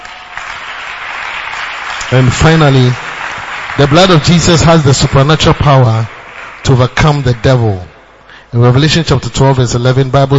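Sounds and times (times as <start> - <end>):
audience clapping: 0.0 - 8.0
speech: 2.1 - 3.0, 3.8 - 7.9, 8.5 - 10.3.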